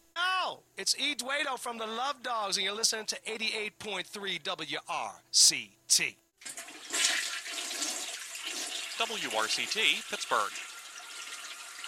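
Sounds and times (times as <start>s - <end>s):
speech: 0.5s - 6.6s, 9.0s - 10.7s
toilet flushing: 6.4s - 11.8s.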